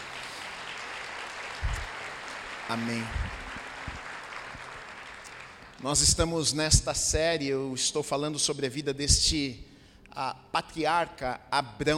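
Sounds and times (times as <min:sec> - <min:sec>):
audience applauding: 0:00.0 - 0:06.3
speech: 0:02.7 - 0:03.4, 0:05.8 - 0:11.9.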